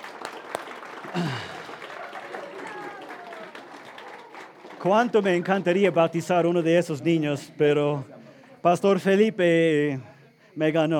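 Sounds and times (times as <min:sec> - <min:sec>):
audience applause: 0:00.0 - 0:06.6
speech: 0:04.8 - 0:10.9.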